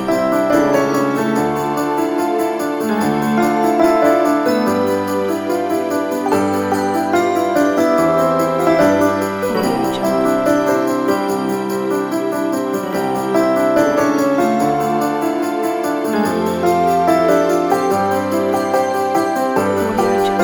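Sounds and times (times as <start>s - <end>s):
Christmas song played on piano: 0.0s - 20.4s.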